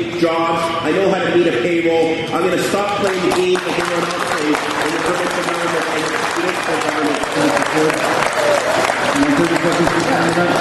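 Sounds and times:
speech: 0.0 - 10.5
council chamber crowd hooting and applauding: 3.0 - 10.5.

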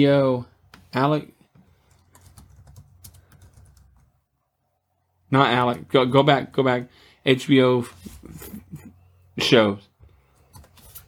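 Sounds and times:
speech: 0.0 - 1.4, 5.3 - 8.7, 9.4 - 9.9
typing on a computer keyboard while searching for TV shows: 1.8 - 4.1.

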